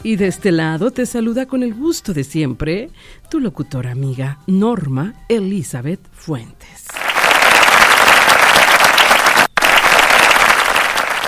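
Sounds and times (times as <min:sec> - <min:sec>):
speech: 0:00.0 - 0:07.0
large crowd applause: 0:06.9 - 0:11.2.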